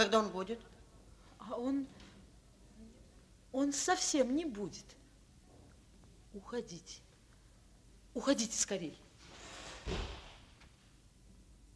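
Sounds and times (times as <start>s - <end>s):
speech: 0.0s - 0.8s, 1.4s - 2.0s, 3.5s - 5.0s, 6.3s - 7.0s, 8.2s - 9.0s, 9.8s - 10.2s
faint hiss: 0.0s - 11.7s
door slamming shut: 9.7s - 10.6s.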